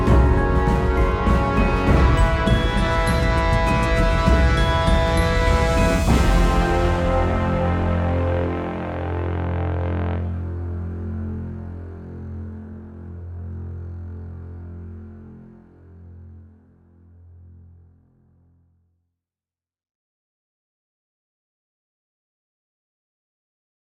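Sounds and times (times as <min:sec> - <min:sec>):
tense music: 0:00.0 - 0:18.0.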